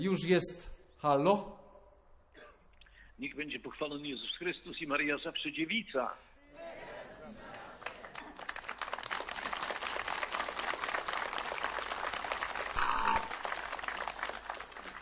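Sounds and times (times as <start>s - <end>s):
speech: 0.0s - 1.6s, 3.2s - 7.5s
applause: 7.4s - 15.0s.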